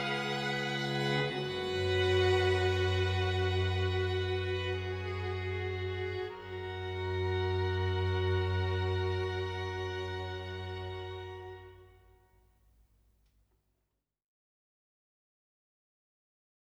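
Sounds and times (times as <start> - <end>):
string quartet playing: 0.0 - 11.9.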